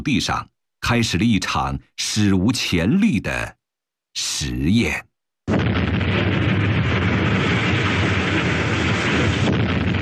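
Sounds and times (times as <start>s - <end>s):
speech: 0.0s - 3.6s, 4.2s - 5.1s
blasting explosions cutting into a hillside to excavate earth at Shekou Industrial Zone, Shenzhen: 5.5s - 10.0s.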